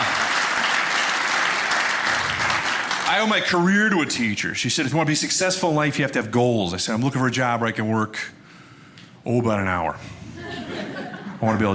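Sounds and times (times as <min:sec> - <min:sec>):
crowd clapping: 0:00.0 - 0:03.6
speech: 0:03.1 - 0:08.4, 0:09.2 - 0:10.6, 0:11.4 - 0:11.7
laughter: 0:10.2 - 0:11.7.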